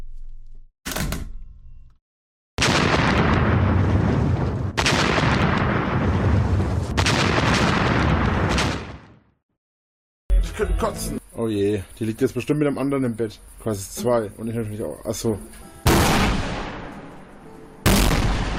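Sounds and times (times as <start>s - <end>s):
artillery fire: 2.6s - 9.3s, 15.9s - 16.9s, 17.8s - 18.5s
speech: 10.6s - 15.7s.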